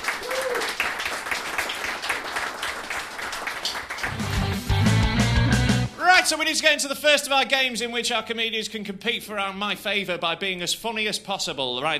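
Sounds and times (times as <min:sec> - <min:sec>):
audience applause: 0:00.0 - 0:05.2
speech: 0:06.3 - 0:11.9.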